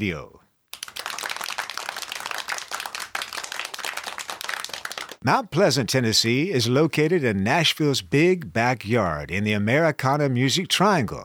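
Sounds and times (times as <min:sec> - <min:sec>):
speech: 0:00.0 - 0:00.4, 0:05.2 - 0:11.2
crowd applause: 0:00.8 - 0:05.2.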